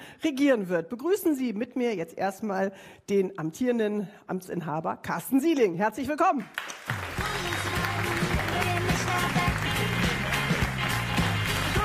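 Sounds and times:
speech: 0:00.2 - 0:07.0
studio audience applause: 0:06.4 - 0:11.8
music: 0:07.0 - 0:11.8.

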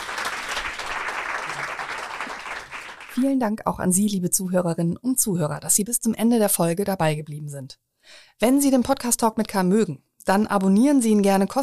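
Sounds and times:
audience applause at a mayoral candidates' forum: 0:00.0 - 0:03.2
speech: 0:03.2 - 0:11.6.

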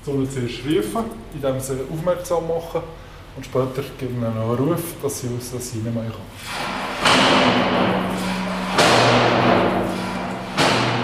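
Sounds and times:
speech: 0:00.0 - 0:08.3
sliding hatch in lion enclosure opened and closed: 0:06.4 - 0:11.0.

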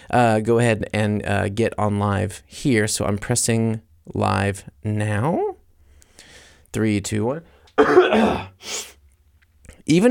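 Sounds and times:
speech: 0:00.1 - 0:05.5, 0:06.7 - 0:08.9, 0:09.9 - 0:10.0
cough: 0:07.8 - 0:08.6
throat clearing: 0:07.8 - 0:08.6.

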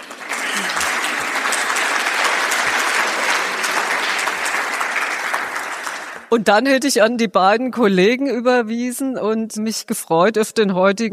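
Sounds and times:
audience applause: 0:00.0 - 0:06.3
speech: 0:06.3 - 0:11.1.

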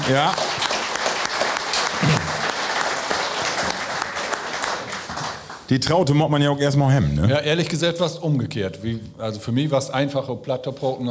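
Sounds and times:
group applauding: 0:00.0 - 0:05.7
speech: 0:00.1 - 0:00.5, 0:05.7 - 0:11.0.

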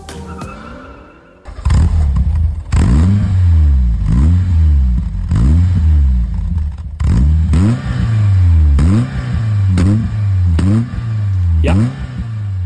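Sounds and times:
four-cylinder car engine revving: 0:01.4 - 0:12.6.

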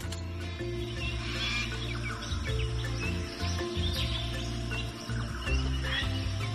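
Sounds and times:
jungle birds calling: 0:00.0 - 0:06.5.

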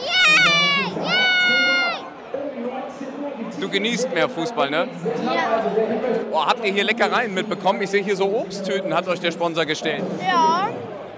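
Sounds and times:
children cheering at a football match: 0:00.0 - 0:02.0
crowd murmur: 0:00.0 - 0:06.4, 0:10.0 - 0:11.1
speech: 0:03.3 - 0:10.8.

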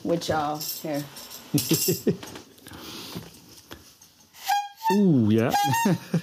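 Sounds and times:
clattering and rustling: 0:00.0 - 0:04.4
speech: 0:00.1 - 0:03.3, 0:04.9 - 0:06.2
laughter: 0:01.6 - 0:02.4, 0:05.6 - 0:06.2
clown horn honk: 0:04.4 - 0:06.2.

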